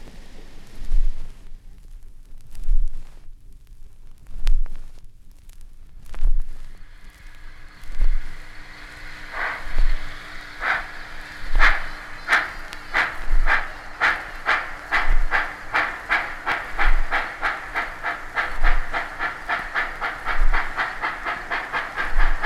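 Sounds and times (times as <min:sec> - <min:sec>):
K4s steam locomotive sounds: 0:00.0 - 0:01.6, 0:06.2 - 0:22.4.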